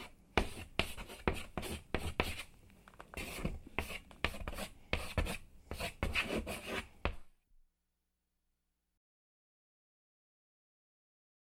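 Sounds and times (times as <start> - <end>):
chalk writing on chalkboard: 0.0 - 2.5, 3.2 - 7.3.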